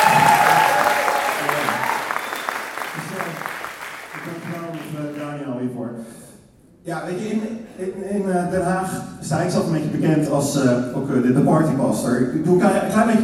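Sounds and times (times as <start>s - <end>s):
audience applause: 0.0s - 5.3s
speech: 6.9s - 13.2s.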